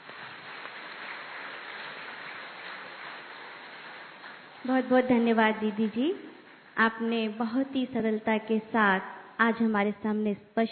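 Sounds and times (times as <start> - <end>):
audience clapping: 0.0 - 4.9
speech: 4.6 - 10.7.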